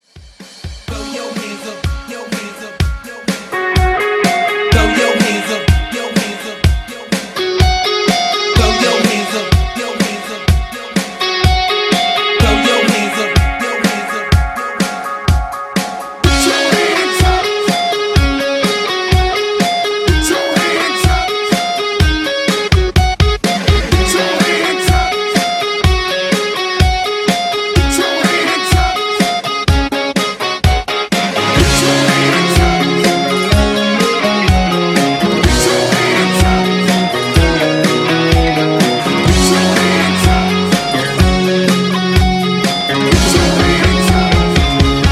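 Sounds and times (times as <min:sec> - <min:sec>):
epic mixshow party dance music at 125 BPM: 0:00.9 - 0:45.0.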